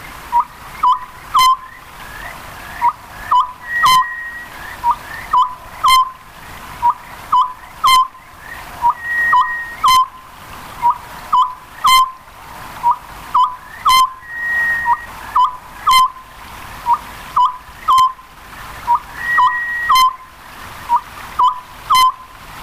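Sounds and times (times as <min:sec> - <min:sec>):
faint high whistle: 0:00.3 - 0:06.2, 0:06.8 - 0:10.2, 0:12.8 - 0:16.2, 0:18.9 - 0:20.3, 0:20.9 - 0:22.3
Oriental scops owl hooting: 0:00.3 - 0:10.2, 0:10.8 - 0:12.2, 0:12.8 - 0:16.2, 0:16.9 - 0:18.2, 0:18.8 - 0:20.3, 0:20.9 - 0:22.3.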